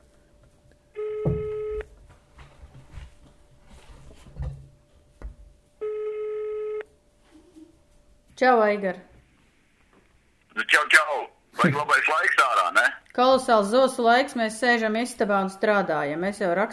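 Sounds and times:
ringback tones of an outgoing phone call: 0:01.0 - 0:01.9, 0:05.8 - 0:06.9
speech: 0:08.4 - 0:09.1, 0:11.6 - 0:16.7.

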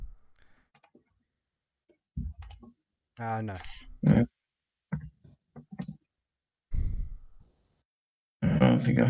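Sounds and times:
password typed on a keyboard: 0:00.4 - 0:01.0
speech: 0:03.2 - 0:04.3.

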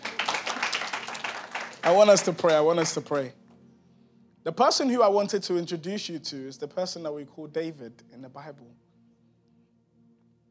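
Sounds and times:
audience clapping: 0:00.0 - 0:03.1
speech: 0:01.8 - 0:03.4, 0:04.4 - 0:08.9.

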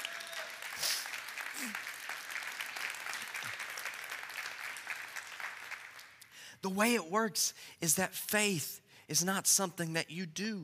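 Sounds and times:
audience clapping hands: 0:00.0 - 0:06.3
speech: 0:06.6 - 0:10.6.

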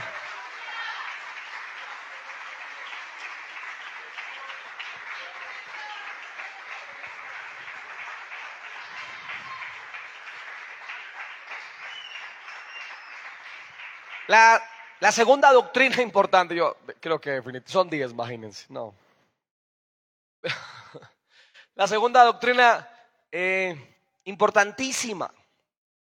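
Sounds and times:
laughter: 0:00.0 - 0:11.0
audience applause: 0:00.0 - 0:15.5
speech: 0:14.3 - 0:19.0, 0:20.4 - 0:21.1, 0:21.8 - 0:25.4.

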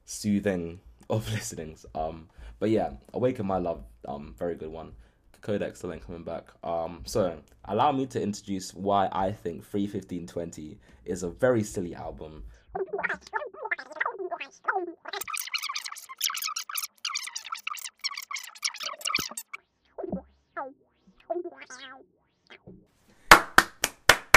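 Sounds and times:
speech: 0:00.1 - 0:15.3
rapid crackling clicks: 0:15.1 - 0:19.6
hand claps: 0:23.3 - 0:24.3.

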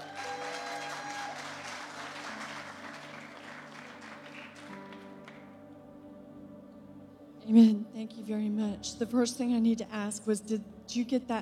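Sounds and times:
audience clapping hands: 0:00.0 - 0:05.6
speech: 0:07.5 - 0:11.4.

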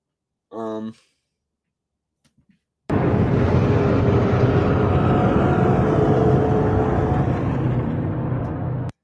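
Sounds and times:
reconstructed Pachyrhinosaurus call, deep gravelly rumble: 0:02.9 - 0:08.9.

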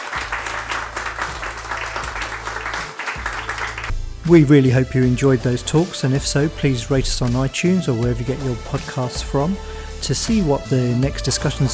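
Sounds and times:
crowd applauding a panel: 0:00.0 - 0:03.9
speech: 0:04.3 - 0:11.7.

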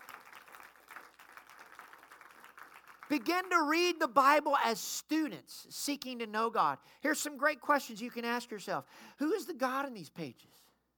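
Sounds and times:
audience hand clapping in praise: 0:00.0 - 0:03.5
speech: 0:03.1 - 0:10.7.

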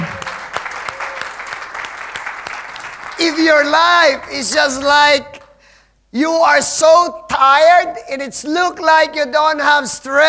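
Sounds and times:
crowd clapping: 0:00.0 - 0:04.4
speech: 0:03.2 - 0:05.4, 0:06.1 - 0:10.2.

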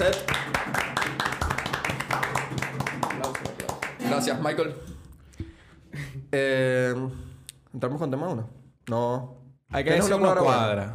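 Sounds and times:
applause for the live band: 0:00.0 - 0:04.2
speech: 0:04.2 - 0:04.9, 0:06.3 - 0:10.9.

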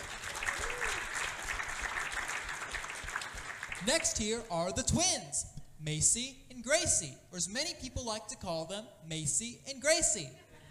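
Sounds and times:
audience applause welcoming a singer at a family concert: 0:00.0 - 0:04.2
speech: 0:03.8 - 0:10.4.

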